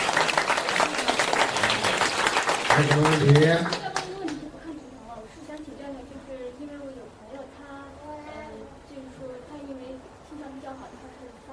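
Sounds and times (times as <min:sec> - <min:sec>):
audience applause: 0:00.0 - 0:04.4
speech: 0:02.8 - 0:03.8.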